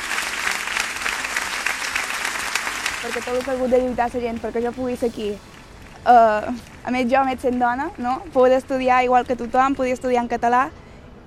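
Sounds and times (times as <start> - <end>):
applause: 0.0 - 8.6
speech: 3.0 - 11.2.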